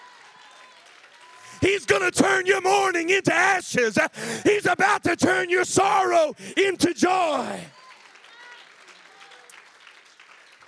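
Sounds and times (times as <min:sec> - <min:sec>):
audience applauding, hand clapping: 0:00.0 - 0:03.0, 0:06.4 - 0:10.6
speech: 0:01.6 - 0:07.8.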